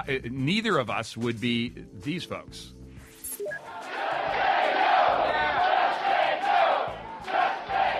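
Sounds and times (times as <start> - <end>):
speech: 0.0 - 2.8
healthcare protesters chanting slogans outside a town hall in Tampa, Florida: 3.6 - 7.9.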